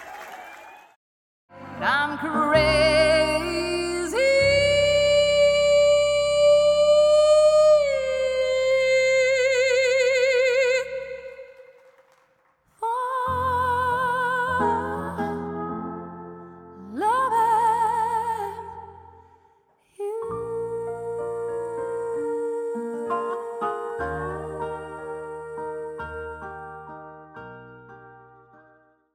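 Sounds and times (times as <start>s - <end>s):
character singing live: 1.5s - 11.7s, 12.8s - 16.2s, 16.8s - 19.0s, 20.0s - 27.0s.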